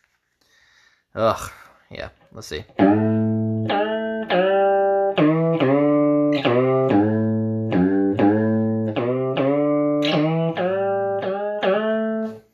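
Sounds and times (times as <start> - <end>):
speech: 1.2 - 3.1
electric guitar notes through a bend echo effects pedal: 2.7 - 12.4.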